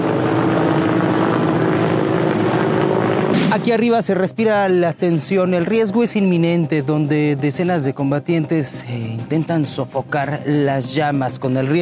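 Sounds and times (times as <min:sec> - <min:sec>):
firefighting aircraft flying overhead: 0:00.0 - 0:05.7
speech: 0:03.6 - 0:11.7.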